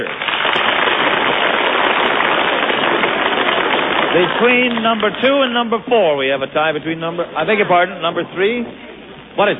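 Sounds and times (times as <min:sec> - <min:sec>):
crowd applauding: 0:00.0 - 0:06.2
speech: 0:04.2 - 0:09.5.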